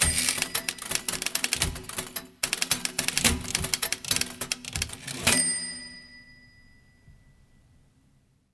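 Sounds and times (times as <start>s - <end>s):
typewriter sonata: 0.0s - 6.0s.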